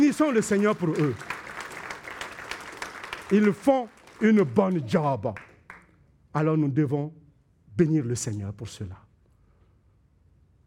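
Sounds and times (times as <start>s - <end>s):
audience clapping: 0.0s - 6.0s
speech: 0.2s - 1.3s, 3.3s - 5.5s, 6.3s - 7.2s, 7.8s - 9.0s.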